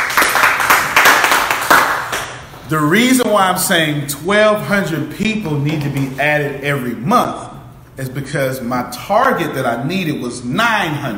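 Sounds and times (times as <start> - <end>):
audience clapping: 0.0 - 2.4
speech: 2.7 - 11.1.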